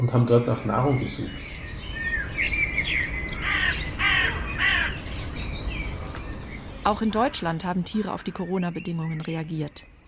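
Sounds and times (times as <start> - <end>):
speech: 0.0 - 1.6, 6.9 - 9.9
faint chirping bird calls: 0.0 - 10.0
low noise: 0.0 - 10.0
crows cawing: 1.9 - 5.5.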